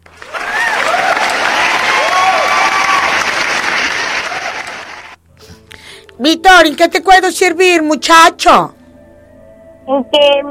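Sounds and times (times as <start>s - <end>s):
large audience applause: 0.0s - 5.2s
whoops and cheers: 0.2s - 4.9s
speech: 6.2s - 8.8s, 9.9s - 10.4s.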